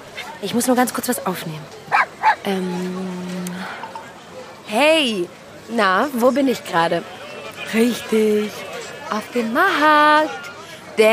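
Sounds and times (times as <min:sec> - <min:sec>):
speech: 0:00.4 - 0:03.8, 0:04.7 - 0:10.4, 0:11.0 - 0:11.1
dog yapping: 0:01.9 - 0:02.4.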